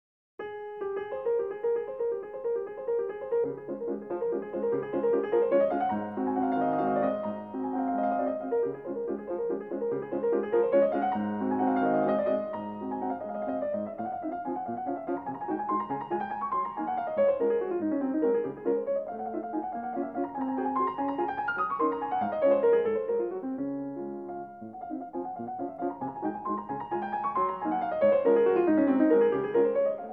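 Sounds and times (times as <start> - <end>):
piano waltz in D flat: 0.4 - 30.1.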